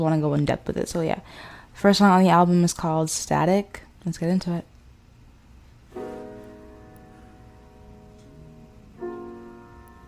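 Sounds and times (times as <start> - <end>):
speech: 0.0 - 4.7
soft piano chords: 5.9 - 10.0.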